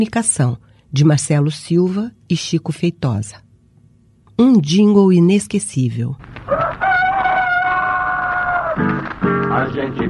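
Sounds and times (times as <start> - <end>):
speech: 0.0 - 3.4, 4.4 - 6.7, 9.6 - 10.0
rooster crowing: 6.4 - 9.0.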